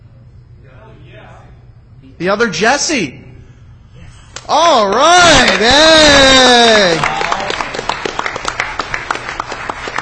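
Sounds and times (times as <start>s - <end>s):
speech: 2.0s - 3.2s, 4.5s - 7.1s
crowd applauding: 4.8s - 10.0s.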